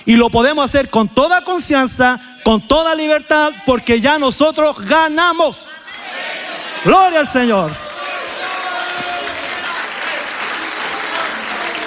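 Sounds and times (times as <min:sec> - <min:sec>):
speech: 0:00.1 - 0:05.7, 0:06.8 - 0:07.8
audience applause: 0:06.0 - 0:11.8.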